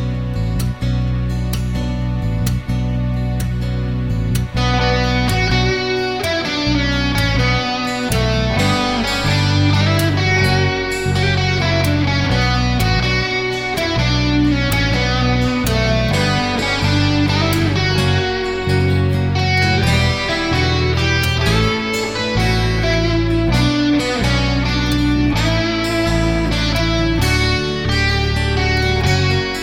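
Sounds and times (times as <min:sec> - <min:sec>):
instrumental Christmas carol: 0:00.1 - 0:29.6.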